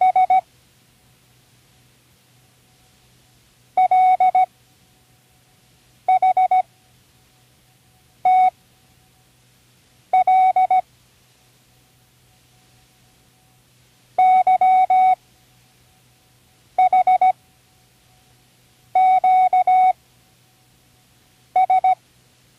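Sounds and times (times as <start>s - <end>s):
morse code signal: 0.0s - 0.4s, 3.8s - 4.5s, 6.1s - 6.7s, 8.2s - 8.6s, 10.2s - 10.8s, 14.2s - 15.2s, 16.8s - 17.4s, 19.0s - 20.0s, 21.6s - 22.0s.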